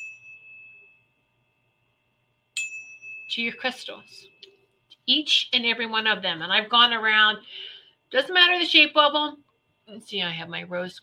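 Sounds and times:
tuning fork lightly struck: 0:00.0 - 0:04.7
speech: 0:03.3 - 0:04.4, 0:05.1 - 0:11.0.

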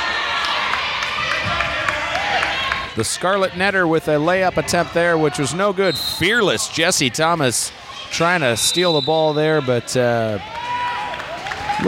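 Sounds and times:
basketball crowd roaring and cheering: 0:00.0 - 0:11.8
speech: 0:03.0 - 0:10.7.

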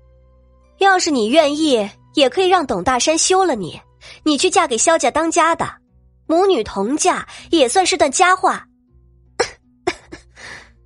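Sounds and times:
speech: 0:00.8 - 0:08.7
feverish woman with a parched throat coughing: 0:09.4 - 0:10.4.

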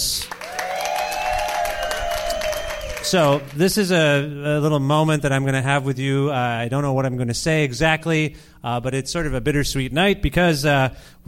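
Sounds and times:
audience applause: 0:00.0 - 0:03.8
speech: 0:03.1 - 0:11.2.

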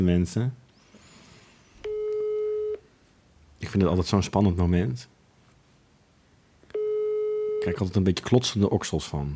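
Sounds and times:
speech: 0:00.0 - 0:00.6, 0:03.6 - 0:05.1, 0:07.6 - 0:09.3
telephone call tone while dialing: 0:01.8 - 0:02.8, 0:06.7 - 0:07.9.

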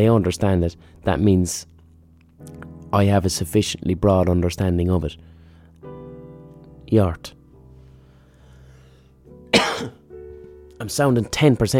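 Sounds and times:
speech: 0:00.0 - 0:01.7, 0:02.4 - 0:05.3, 0:06.9 - 0:07.4, 0:10.8 - 0:11.7
cough from a tickly throat: 0:09.5 - 0:10.0.

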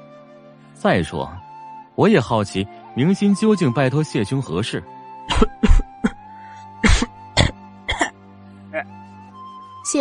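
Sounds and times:
speech: 0:00.8 - 0:01.4, 0:02.0 - 0:06.2
narrator clearing throat for a character in an audiobook: 0:05.3 - 0:06.2, 0:06.8 - 0:08.1
narrator coughing for a character in an audiobook: 0:05.3 - 0:06.2, 0:06.8 - 0:08.1.

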